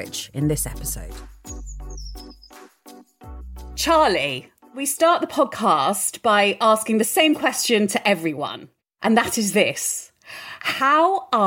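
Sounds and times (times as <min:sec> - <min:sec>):
speech: 0:00.0 - 0:01.4, 0:03.8 - 0:11.4
faint birdsong: 0:01.5 - 0:02.6.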